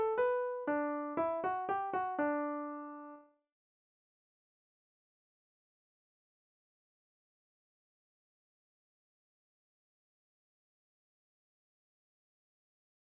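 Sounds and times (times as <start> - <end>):
melodic music: 0.0 - 3.2.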